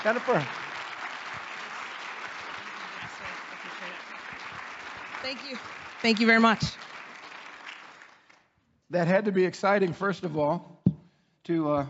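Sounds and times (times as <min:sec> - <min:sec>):
speech: 0:00.0 - 0:00.7, 0:05.2 - 0:06.8, 0:08.9 - 0:10.7, 0:11.5 - 0:11.8
standing audience clapping in welcome for a guest: 0:00.0 - 0:08.6.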